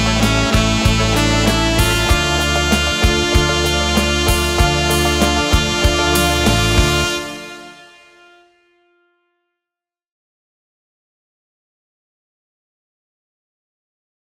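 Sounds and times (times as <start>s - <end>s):
saxophone playing a cover: 0.0s - 9.3s.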